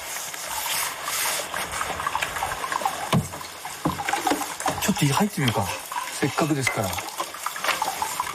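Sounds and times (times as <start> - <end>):
hot water pouring into a foot bath: 0.0 - 8.3
speech: 5.0 - 7.2.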